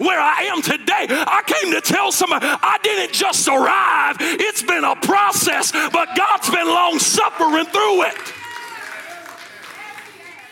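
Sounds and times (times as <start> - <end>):
speech: 0.0 - 8.4
audience clapping: 5.5 - 10.5.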